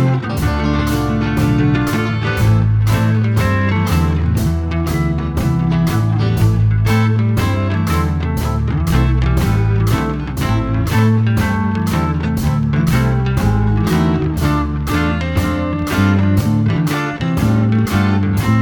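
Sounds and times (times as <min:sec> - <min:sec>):
shuffle drum beat in A minor: 0:00.0 - 0:18.5.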